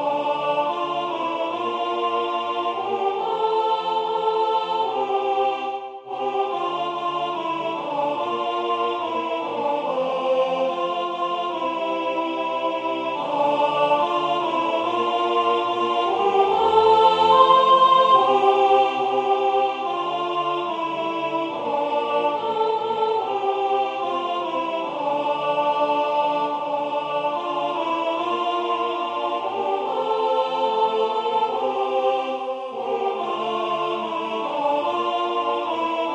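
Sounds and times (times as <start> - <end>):
soprano singing: 0.0 - 36.1.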